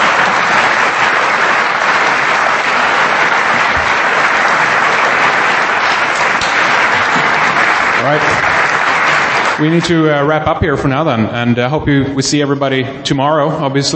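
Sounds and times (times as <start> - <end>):
audience applause: 0.0 - 10.0
speech: 8.1 - 8.4, 9.6 - 13.9.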